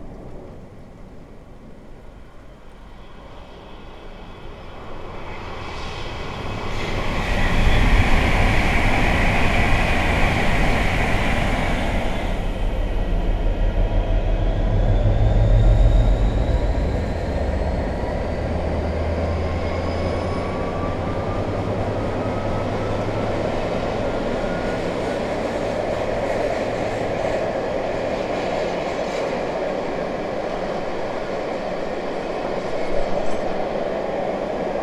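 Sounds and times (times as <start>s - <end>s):
July rain: 0.0s - 5.0s
train: 0.0s - 34.8s.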